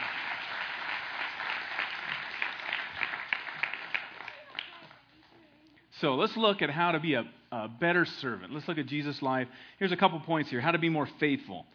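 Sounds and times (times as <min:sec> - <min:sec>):
audience applause: 0:00.0 - 0:05.0
speech: 0:06.0 - 0:11.7.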